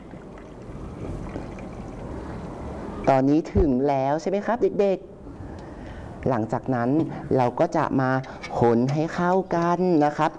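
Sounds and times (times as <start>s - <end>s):
water poured into a container during a children's science demonstration: 0.0s - 2.8s
speech: 3.1s - 5.1s, 6.2s - 10.3s.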